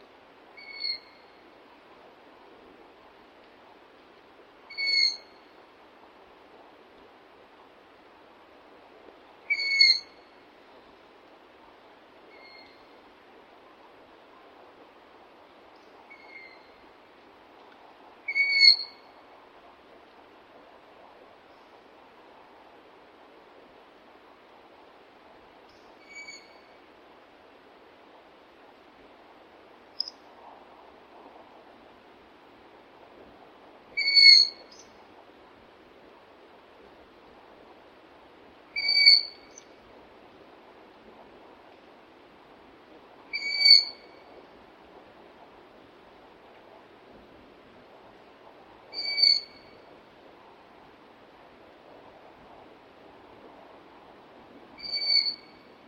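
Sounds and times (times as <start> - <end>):
owl chick calling: 0.6 - 1.2, 4.7 - 5.2, 9.5 - 10.1, 16.1 - 16.6, 26.0 - 26.6, 34.0 - 34.9, 38.8 - 39.7, 43.3 - 44.0, 49.0 - 49.6, 54.8 - 55.5.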